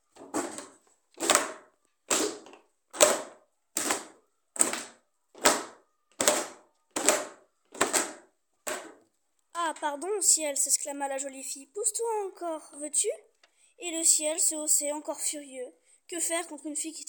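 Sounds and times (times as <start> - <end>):
pestle pounding knocks: 0.2 - 9.0
speech: 9.8 - 17.0.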